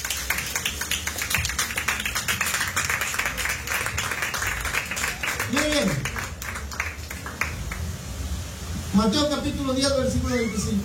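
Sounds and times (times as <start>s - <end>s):
audience clapping: 0.0s - 7.9s
speech: 9.0s - 10.8s.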